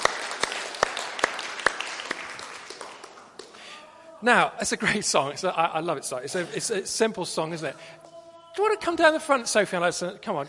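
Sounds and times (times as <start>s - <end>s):
congregation at a church service applauding after a children's song: 0.0s - 3.7s
speech: 4.2s - 10.4s.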